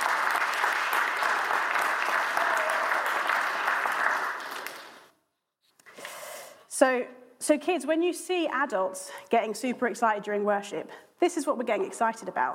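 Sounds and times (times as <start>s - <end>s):
audience clapping: 0.0s - 5.2s
speech: 6.8s - 12.5s.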